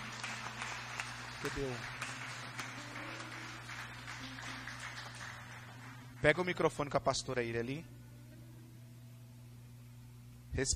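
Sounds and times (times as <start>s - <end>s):
audience applauding: 0.0s - 6.8s
speech: 1.4s - 2.2s, 6.2s - 8.0s, 10.5s - 10.7s.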